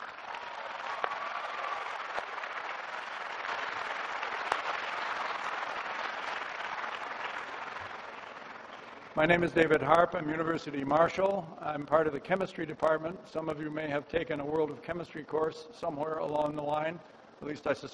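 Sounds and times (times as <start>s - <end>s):
applause: 0.0s - 9.3s
speech: 9.2s - 17.9s.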